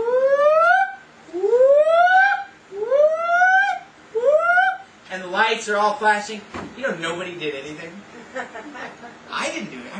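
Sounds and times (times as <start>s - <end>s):
voice imitating an airport fire alarm siren: 0.0s - 4.9s
speech: 5.4s - 9.9s
laughter: 8.2s - 9.3s.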